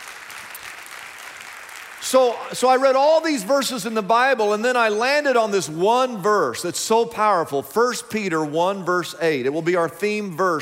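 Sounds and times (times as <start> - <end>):
audience clapping: 0.0 - 2.9
speech: 2.0 - 10.6.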